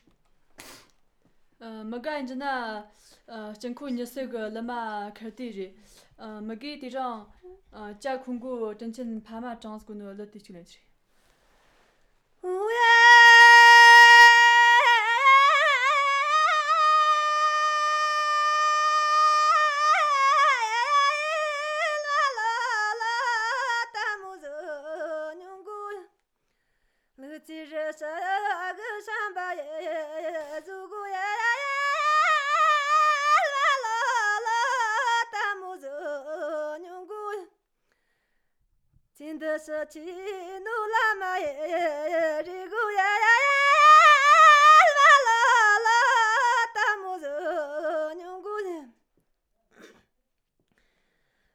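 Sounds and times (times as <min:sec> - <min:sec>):
folk song: 0:11.1 - 0:38.2, 0:39.2 - 0:48.9.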